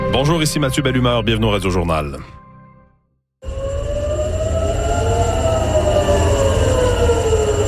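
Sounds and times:
speech: 0.1 - 2.4
air raid sirens wailing across a city: 3.4 - 7.6.

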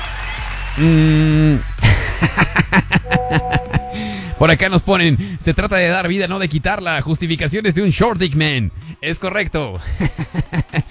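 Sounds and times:
applause: 0.0 - 1.0
speech: 0.8 - 2.8, 4.4 - 10.8
laughter: 1.8 - 3.8, 9.8 - 10.8.

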